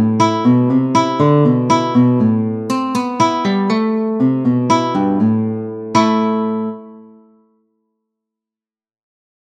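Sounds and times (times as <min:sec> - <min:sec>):
guitar playing round dance tune: 0:00.0 - 0:07.5.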